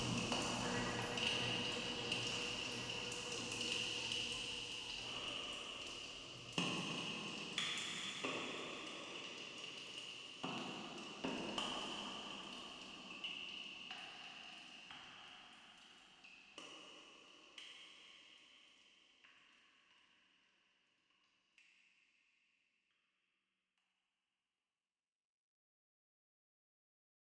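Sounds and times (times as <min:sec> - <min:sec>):
rain: 0:00.0 - 0:15.9.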